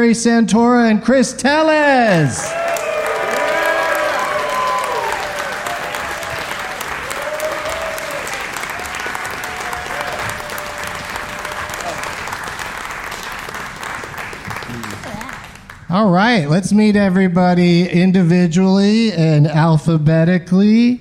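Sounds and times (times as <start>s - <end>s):
speech: 0.0s - 2.7s, 16.0s - 21.0s
audience applause: 2.1s - 15.8s
cheering and whoops: 2.3s - 12.3s.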